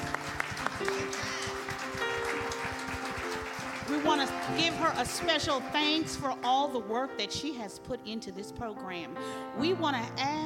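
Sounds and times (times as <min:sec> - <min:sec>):
round of applause: 0:00.0 - 0:06.1
speech: 0:04.0 - 0:10.4.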